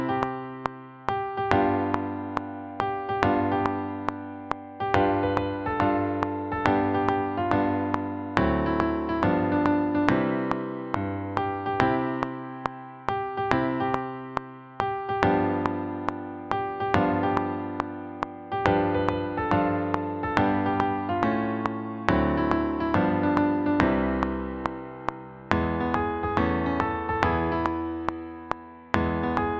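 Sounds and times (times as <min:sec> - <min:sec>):
color chords: 0:00.1 - 0:29.5.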